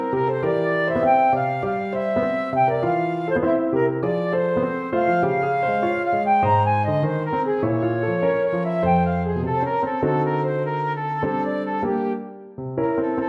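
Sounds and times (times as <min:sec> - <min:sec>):
flute: 0:00.0 - 0:13.2
tango music: 0:00.0 - 0:13.2.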